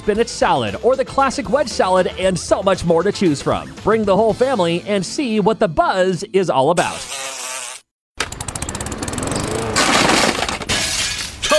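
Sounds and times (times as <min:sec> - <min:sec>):
speech: 0:00.0 - 0:07.2
glass fragments rattling: 0:09.8 - 0:11.5
window glass shattering: 0:09.8 - 0:11.5.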